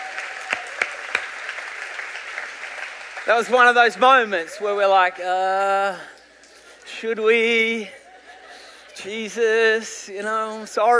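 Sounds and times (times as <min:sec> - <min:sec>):
audience clapping: 0:00.0 - 0:05.1
speech: 0:03.3 - 0:06.2, 0:07.0 - 0:08.0, 0:09.0 - 0:10.9
laughter: 0:07.8 - 0:09.6.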